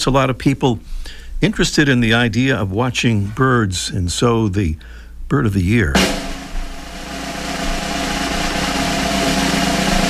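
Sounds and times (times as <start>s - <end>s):
speech: 0.0s - 6.2s
long drum roll: 6.0s - 10.0s.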